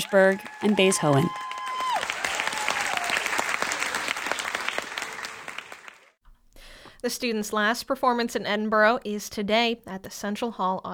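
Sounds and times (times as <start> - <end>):
speech: 0.0 - 1.5, 7.0 - 10.9
thunderous applause from audience: 0.0 - 6.1.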